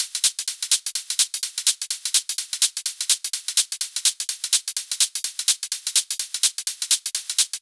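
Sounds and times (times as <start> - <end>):
126 BPM drum kit: 0.0 - 7.6.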